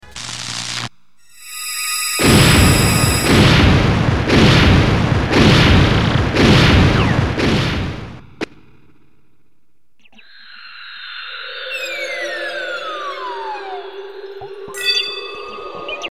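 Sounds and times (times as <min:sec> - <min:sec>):
explosion: 0:02.2 - 0:09.2.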